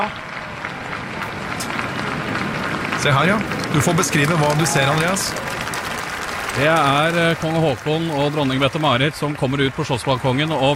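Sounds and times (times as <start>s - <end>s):
speech: 0.0s - 0.2s, 3.0s - 5.5s, 6.6s - 10.7s
crowd applauding outdoors: 0.0s - 10.7s.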